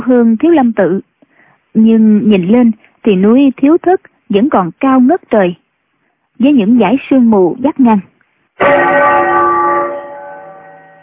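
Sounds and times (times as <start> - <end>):
speech: 0.1 - 1.1, 1.8 - 5.6, 6.4 - 9.4
temple bell struck near a mountain monastery, carried on the wind: 8.6 - 11.0.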